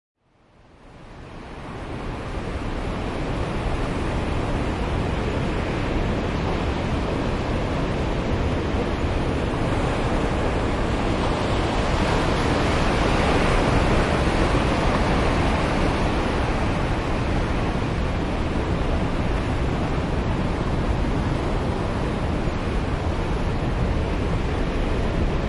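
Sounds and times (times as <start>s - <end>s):
sea waves at Praia da Vagueira: 0.7s - 25.4s.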